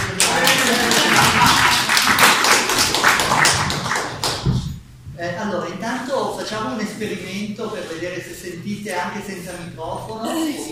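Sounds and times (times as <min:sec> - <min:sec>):
audience applause at a talk: 0:00.0 - 0:04.6
speech: 0:06.5 - 0:10.7.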